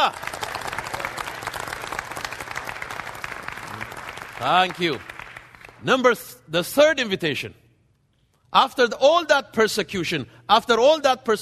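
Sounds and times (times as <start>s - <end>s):
speech: 0.0s - 0.3s, 4.4s - 5.1s, 5.8s - 7.6s, 8.5s - 11.4s
audience hand clapping: 0.0s - 6.0s.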